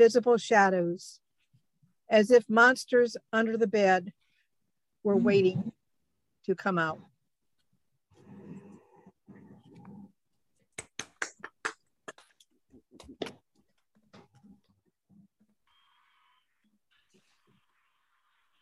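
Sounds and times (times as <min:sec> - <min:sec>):
speech: 0:00.0 - 0:01.2, 0:02.1 - 0:04.2, 0:05.0 - 0:05.8, 0:06.4 - 0:07.1
clapping sound effect: 0:10.7 - 0:12.4.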